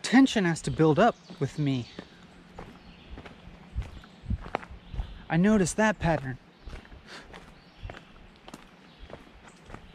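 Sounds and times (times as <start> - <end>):
speech: 0.1 - 2.1, 5.3 - 6.4
soft footsteps of a person walking: 0.7 - 9.9.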